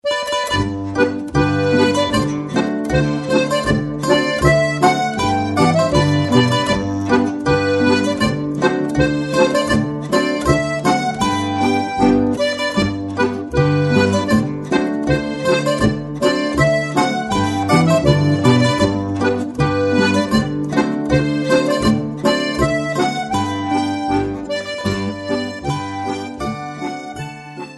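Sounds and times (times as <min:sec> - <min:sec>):
polka music: 0:00.0 - 0:27.7.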